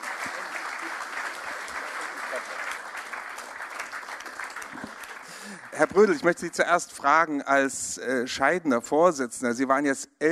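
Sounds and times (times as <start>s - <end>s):
thunderous audience applause: 0.0s - 6.6s
speech: 5.8s - 10.3s.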